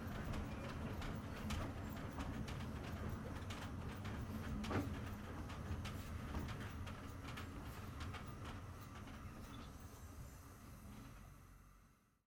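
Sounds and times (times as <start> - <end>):
old train cabin interior: 0.0 - 12.1.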